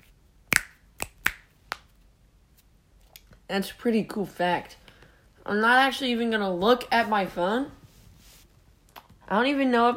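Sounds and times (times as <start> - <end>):
finger snapping: 0.5 - 1.9
speech: 3.5 - 4.8, 5.5 - 7.8, 9.3 - 9.9.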